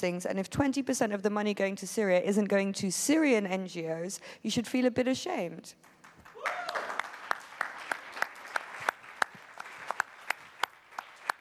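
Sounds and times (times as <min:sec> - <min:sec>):
speech: 0:00.0 - 0:06.6
audience applause: 0:06.0 - 0:11.4.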